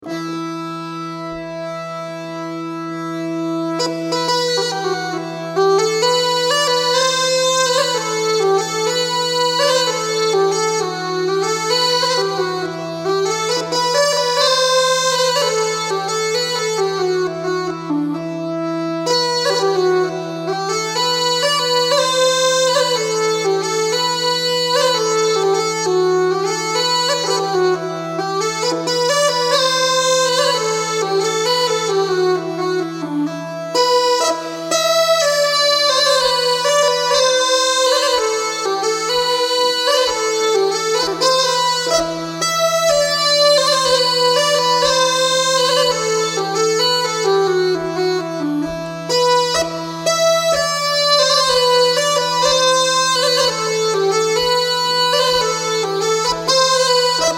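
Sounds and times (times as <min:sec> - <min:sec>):
bagpipe march: 0:00.0 - 0:57.3
fiddler playing: 0:00.0 - 0:57.3.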